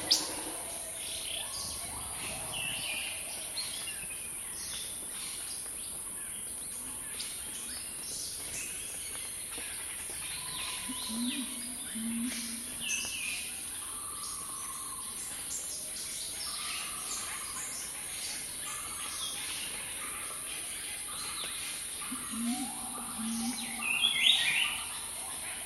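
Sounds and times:
hill forest habitat ambience: 0:00.0 - 0:25.6.

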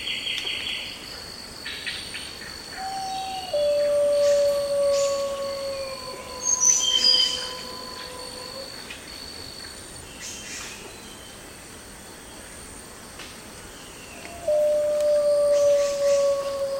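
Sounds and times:
black-hooded oriole calling: 0:02.8 - 0:08.8, 0:14.1 - 0:16.7.

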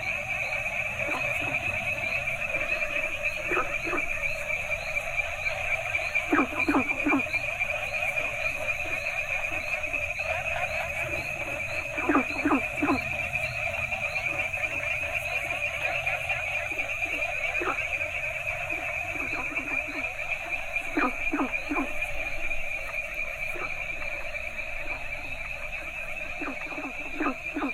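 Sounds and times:
frogs rasping croaks: 0:00.0 - 0:27.7.

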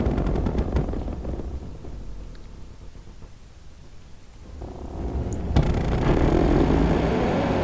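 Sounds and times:
iceberg creaking with tidal movements: 0:00.0 - 0:03.5, 0:04.4 - 0:07.5.

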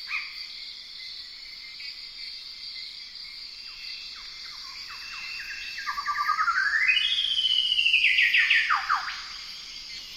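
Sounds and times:
golden whistler song: 0:04.4 - 0:09.5.

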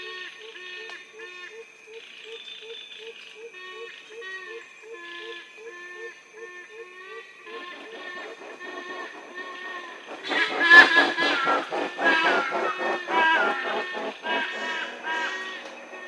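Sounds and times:
yellow-casqued hornbills braying calls: 0:07.4 - 0:16.0.

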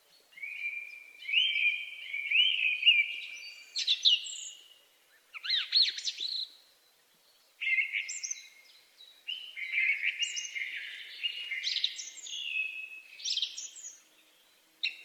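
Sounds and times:
song thrush singing a twittering flourish and whistled phrases: 0:00.0 - 0:15.0.

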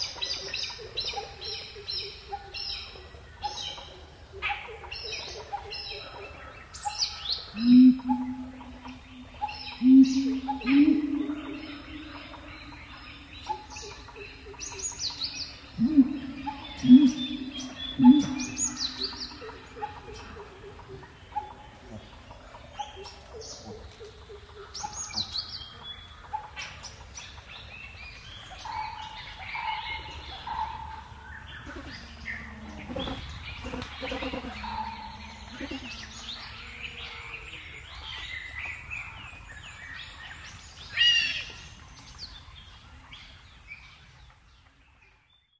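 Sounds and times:
barbets calling: 0:00.0 - 0:25.6, 0:28.5 - 0:39.3
prinias calling: 0:06.9 - 0:25.3, 0:28.6 - 0:38.4
fantails calling: 0:07.5 - 0:20.8, 0:30.1 - 0:38.0.

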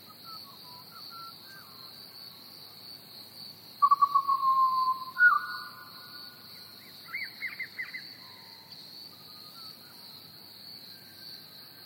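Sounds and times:
Pied Butcherbird whistling: 0:03.8 - 0:05.7.

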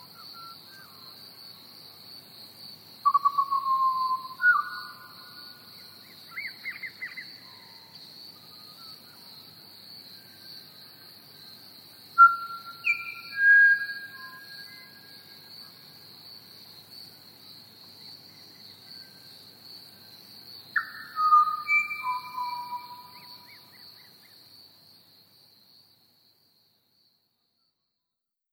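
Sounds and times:
Pied Butcherbird song: 0:03.0 - 0:05.4, 0:06.1 - 0:09.1, 0:12.2 - 0:15.2, 0:20.8 - 0:24.4.

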